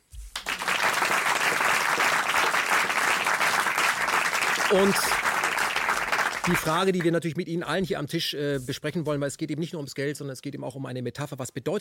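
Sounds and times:
audience applause: 0:00.3 - 0:07.0
speech: 0:04.7 - 0:05.3, 0:06.4 - 0:11.7.

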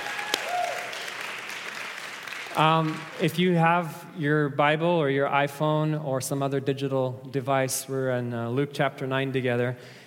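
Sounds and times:
audience applause: 0:00.0 - 0:03.4
speech: 0:02.6 - 0:10.0.

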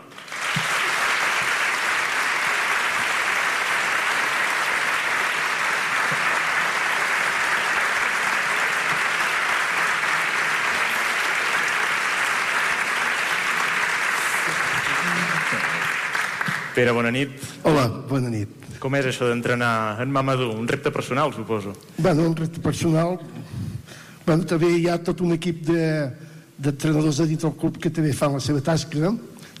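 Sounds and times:
audience applause: 0:00.0 - 0:16.9
speech: 0:16.8 - 0:23.4, 0:24.3 - 0:29.5.

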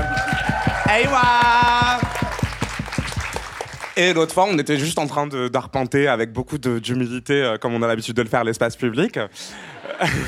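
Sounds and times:
audience applause: 0:00.0 - 0:04.6
speech: 0:00.9 - 0:01.7, 0:04.0 - 0:10.2
laughter: 0:09.5 - 0:10.2.

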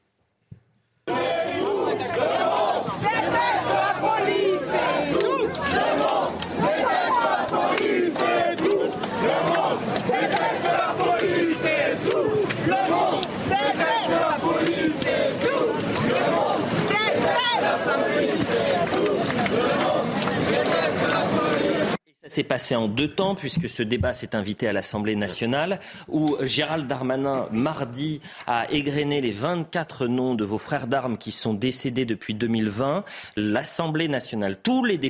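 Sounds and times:
protest crowd chanting a slogan: 0:01.1 - 0:22.0
speech: 0:22.4 - 0:35.0.

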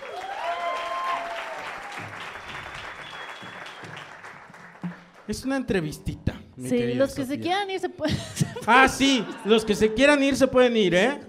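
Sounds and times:
whistles and cheers: 0:00.0 - 0:04.2
audience applause: 0:00.0 - 0:05.3
speech: 0:05.3 - 0:11.2
laughter: 0:08.0 - 0:10.0.

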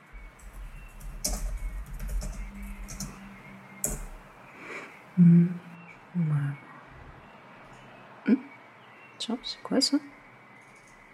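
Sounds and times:
typing on a computer keyboard: 0:00.0 - 0:04.2
speech: 0:05.2 - 0:05.6, 0:09.4 - 0:10.1.

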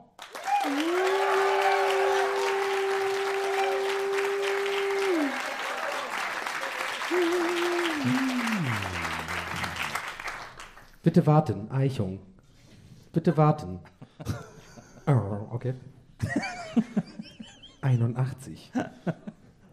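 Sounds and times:
audience applause: 0:00.2 - 0:10.9
laughter: 0:00.6 - 0:10.2, 0:13.8 - 0:15.3, 0:16.2 - 0:17.8
speech: 0:11.1 - 0:12.3, 0:13.2 - 0:14.5, 0:15.1 - 0:17.2, 0:17.8 - 0:19.2.

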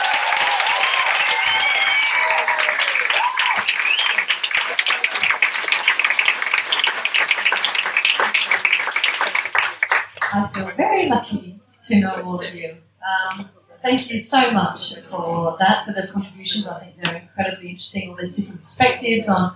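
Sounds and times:
voices cheering: 0:00.0 - 0:08.3
audience applause for a panel: 0:00.0 - 0:10.6
speech: 0:11.1 - 0:19.5.

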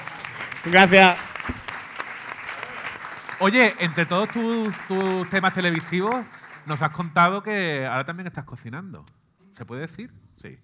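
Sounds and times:
audience applause: 0:00.0 - 0:07.0
speech: 0:00.6 - 0:01.6, 0:03.4 - 0:10.6.

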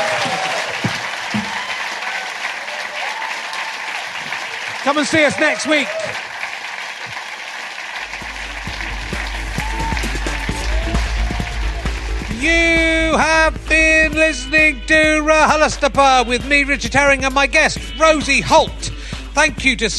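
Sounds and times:
audience applause: 0:00.0 - 0:13.6
speech: 0:04.9 - 0:06.3, 0:12.4 - 0:19.9.

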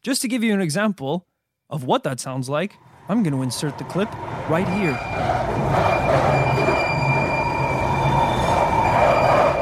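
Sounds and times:
speech: 0:00.0 - 0:06.5
London Underground train wheels screeching: 0:02.8 - 0:09.5.

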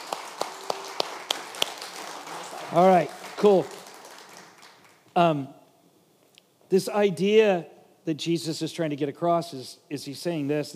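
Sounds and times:
applause: 0:00.0 - 0:05.1
speech: 0:02.7 - 0:03.8, 0:05.2 - 0:05.6, 0:06.7 - 0:10.7.

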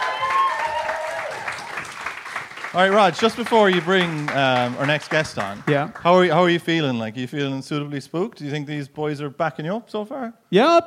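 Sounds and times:
audience applause: 0:00.0 - 0:06.5
speech: 0:02.7 - 0:10.8.

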